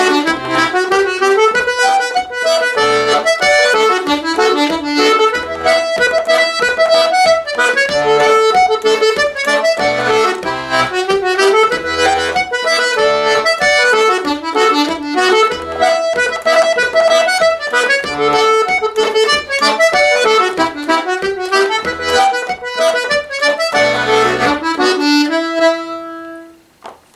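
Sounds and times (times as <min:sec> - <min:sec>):
button accordion: 0:00.0 - 0:26.7.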